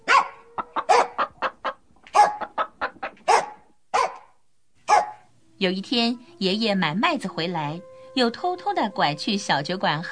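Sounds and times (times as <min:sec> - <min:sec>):
dog barking: 0:00.0 - 0:01.3, 0:02.1 - 0:02.5, 0:03.2 - 0:05.3
hens clucking: 0:00.1 - 0:03.7
speech: 0:05.6 - 0:10.1.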